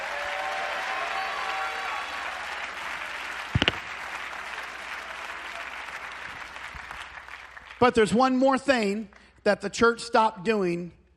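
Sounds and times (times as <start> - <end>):
audience clapping hands: 0.0 - 7.9
speech: 7.8 - 11.0.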